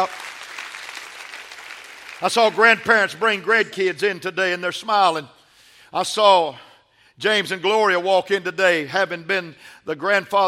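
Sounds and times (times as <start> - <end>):
speech: 0.0 - 0.2, 2.2 - 10.4
audience clapping hands: 0.0 - 3.4.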